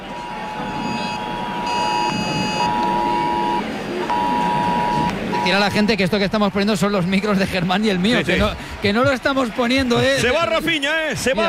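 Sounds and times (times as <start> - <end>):
electronic alert beeping: 0.0 - 6.0
constant rushing noise: 0.0 - 11.4
speech: 5.5 - 11.4.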